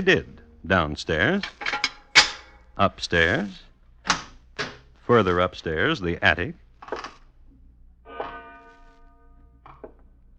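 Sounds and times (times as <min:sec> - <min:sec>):
speech: 0:00.0 - 0:01.6, 0:02.8 - 0:04.2, 0:05.1 - 0:06.6
clock bell striking: 0:08.1 - 0:09.6.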